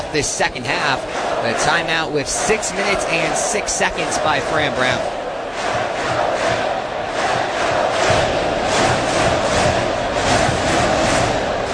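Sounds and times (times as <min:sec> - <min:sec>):
football fans cheering at Acrisure Stadium during Pitt versus Syracuse: 0:00.0 - 0:11.7
speech: 0:00.1 - 0:05.8.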